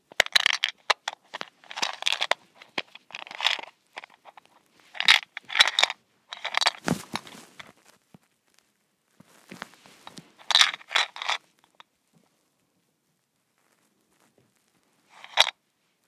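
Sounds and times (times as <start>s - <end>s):
mint shaker rattled: 0.1s - 7.4s, 10.0s - 11.8s, 15.1s - 15.6s.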